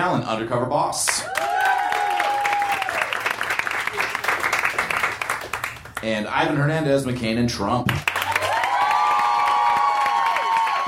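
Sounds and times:
speech: 0.1s - 1.4s, 6.0s - 8.1s
crowd audience applause and cheering: 1.2s - 6.0s, 8.0s - 10.8s.

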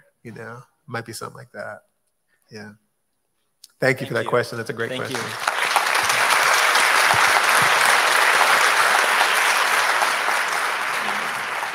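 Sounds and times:
speech: 0.2s - 1.9s, 2.5s - 2.8s, 3.7s - 5.5s
audience applause: 4.9s - 11.7s.

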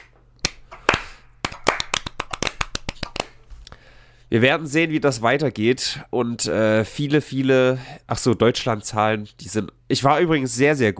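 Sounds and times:
brief applause, hands clapping: 0.0s - 3.4s
speech: 4.3s - 10.9s.

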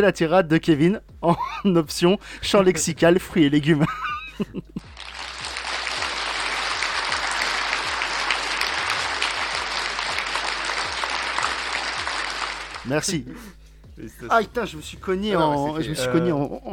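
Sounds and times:
speech: 0.0s - 4.9s, 12.9s - 16.7s
audience applause: 4.9s - 13.0s.

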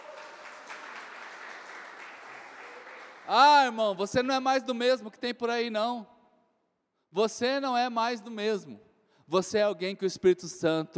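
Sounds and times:
audience applauding: 0.0s - 3.8s
speech: 3.3s - 6.1s, 7.1s - 10.9s.

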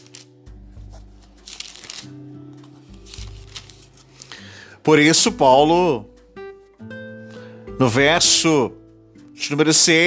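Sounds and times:
Bible pages turning: 0.0s - 5.4s
speech: 4.8s - 6.1s, 7.8s - 8.8s, 9.4s - 10.0s.

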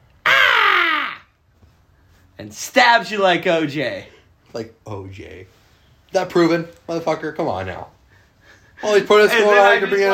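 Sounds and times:
voice imitating raptor scream: 0.2s - 1.4s
speech: 2.4s - 8.0s, 8.8s - 10.1s.

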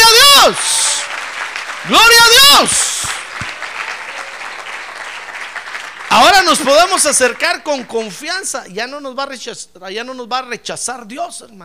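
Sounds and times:
audience applause: 0.0s - 8.2s
speech: 1.8s - 2.8s, 6.2s - 11.6s.

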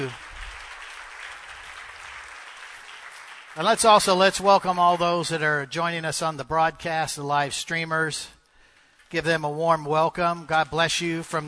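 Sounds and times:
speech: 0.0s - 0.2s, 3.6s - 8.4s, 9.1s - 11.4s
audience clapping hands: 0.0s - 5.7s, 8.6s - 11.4s.

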